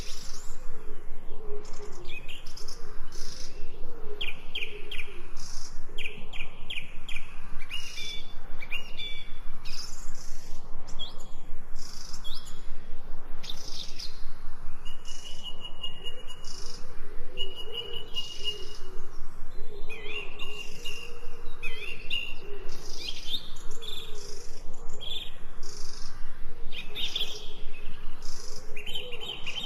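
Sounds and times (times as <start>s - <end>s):
3D forest ambience: 0.0s - 29.6s.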